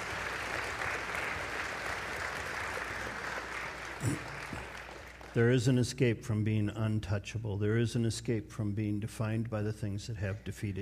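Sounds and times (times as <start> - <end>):
audience applause: 0.0 - 5.4
speech: 5.4 - 10.8.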